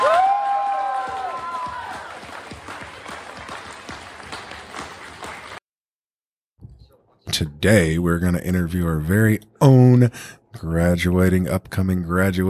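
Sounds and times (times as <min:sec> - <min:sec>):
audience applause and cheering: 0:00.0 - 0:05.6
speech: 0:07.3 - 0:12.4.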